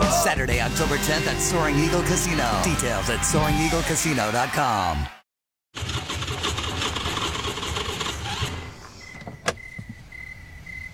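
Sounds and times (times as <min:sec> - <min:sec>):
speech: 0:00.2 - 0:05.2
car engine running out of gas: 0:05.8 - 0:09.2.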